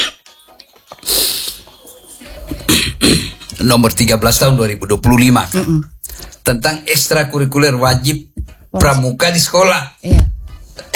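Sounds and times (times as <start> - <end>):
person coughing: 2.7 - 3.5
speech: 3.1 - 10.3.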